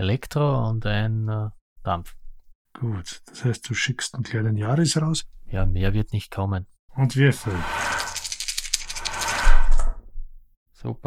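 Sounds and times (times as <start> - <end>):
speech: 0.0 - 2.2, 2.8 - 8.1, 10.8 - 11.0
several dice clattering and rattling: 7.9 - 9.4.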